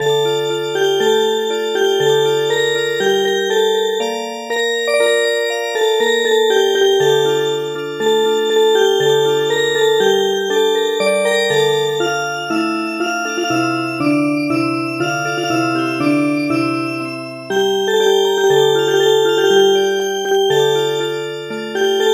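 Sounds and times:
music box: 0.0s - 22.1s.

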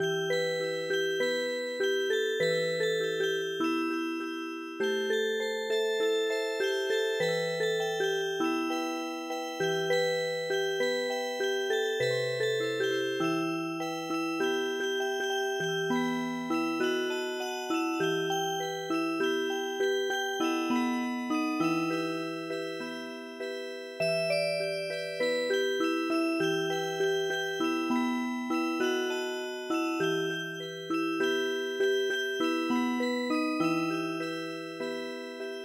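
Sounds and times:
MIDI music box melody: 0.0s - 35.6s.

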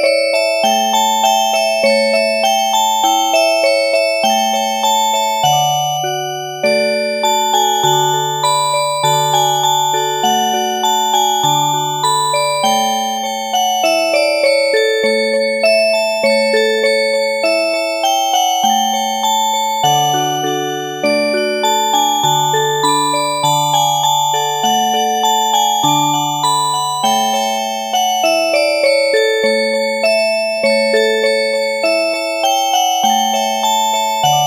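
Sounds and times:
music box playing an oberek: 0.0s - 34.4s.

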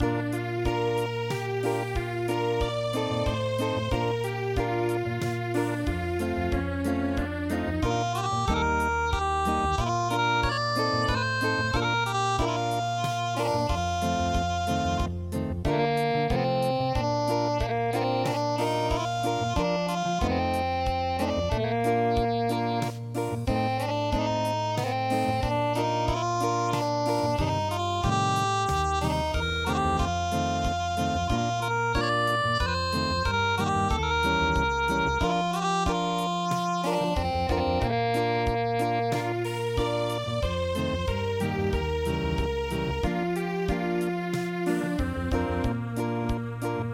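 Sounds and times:
acoustic music: 0.0s - 46.9s.

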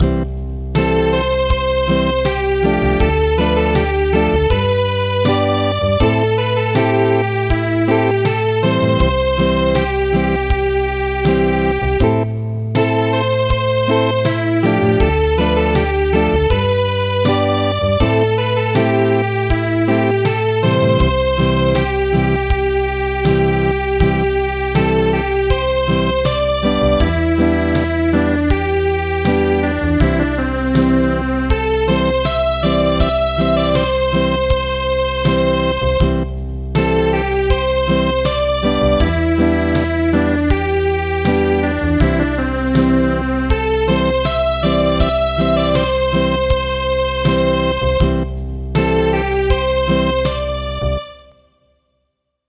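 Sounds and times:
acoustic music: 0.0s - 51.4s.

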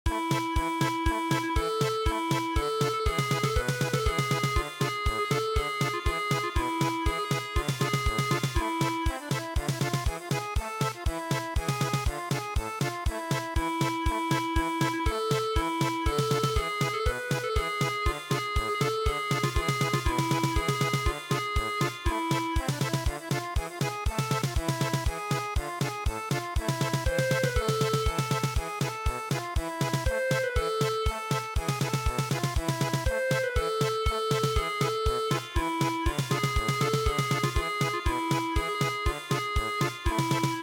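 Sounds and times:
German polka music: 0.1s - 40.6s.

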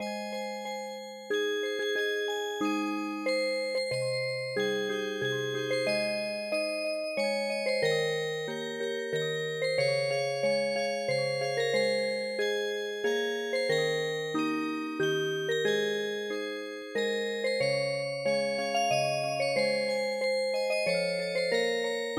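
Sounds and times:
traditional music box: 0.0s - 22.1s.

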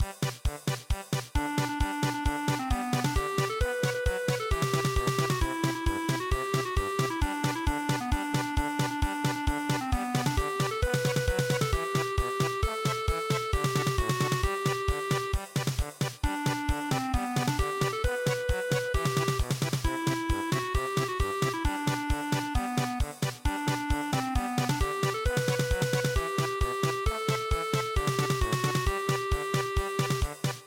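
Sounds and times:
polka music: 0.1s - 30.6s.

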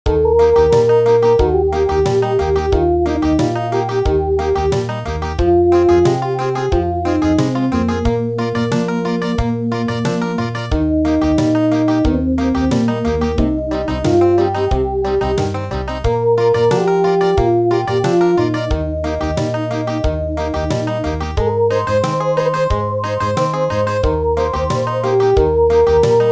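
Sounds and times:
country music: 0.1s - 26.3s.

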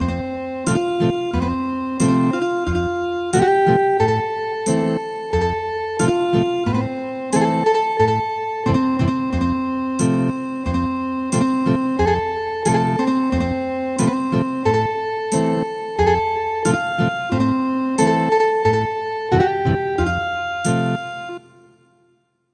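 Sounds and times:
ethnic guitar music: 0.0s - 21.7s.

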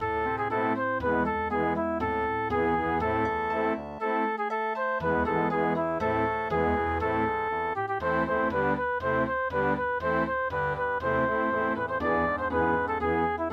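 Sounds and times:
Viennese waltz music: 0.0s - 13.5s.

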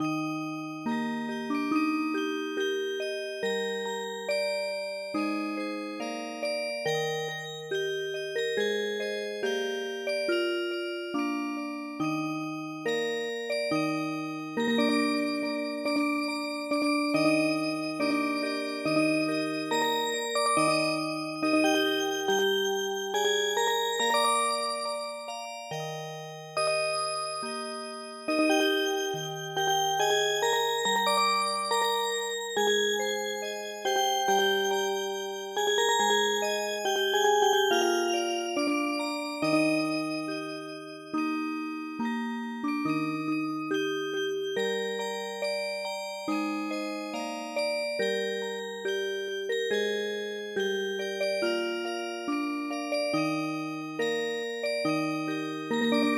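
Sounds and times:
music box: 0.0s - 56.1s.

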